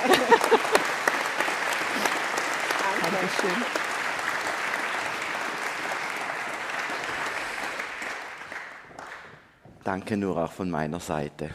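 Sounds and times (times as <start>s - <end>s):
laughter: 0.0s - 1.4s
audience applause: 0.0s - 9.4s
speech: 3.1s - 3.8s, 9.9s - 11.5s.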